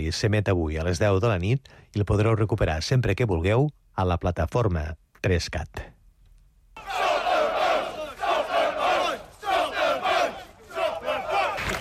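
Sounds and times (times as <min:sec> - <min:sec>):
speech: 0:00.0 - 0:05.9
crowd of protesters chanting a slogan: 0:06.8 - 0:11.7.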